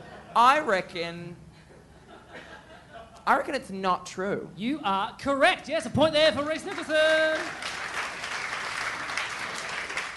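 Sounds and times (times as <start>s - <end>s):
speech: 0.4s - 1.4s, 3.2s - 7.8s
weak audience clap: 6.4s - 10.1s.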